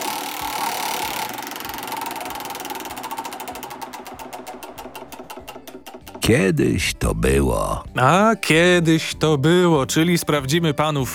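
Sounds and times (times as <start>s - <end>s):
game-show prize wheel pointer ticking: 0.0s - 6.6s
speech: 6.3s - 11.1s.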